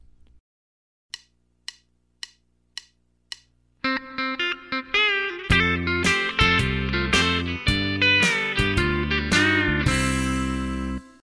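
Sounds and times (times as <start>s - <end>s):
country rock music: 3.8s - 11.2s.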